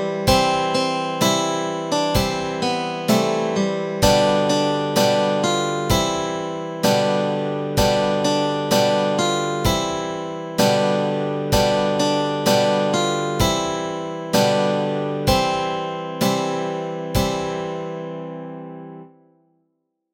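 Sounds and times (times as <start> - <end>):
melody and chords: 0.0 - 19.3.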